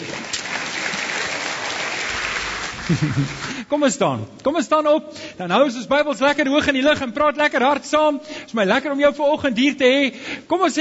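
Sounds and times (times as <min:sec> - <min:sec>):
audience applause: 0:00.0 - 0:03.6
laughter: 0:02.7 - 0:03.6
speech: 0:02.9 - 0:10.7.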